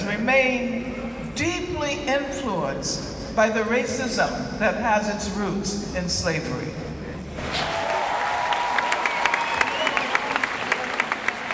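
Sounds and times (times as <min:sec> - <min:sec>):
speech: 0:00.2 - 0:06.9
large audience applause: 0:07.4 - 0:11.5
faint whistle or cheer: 0:07.6 - 0:10.9.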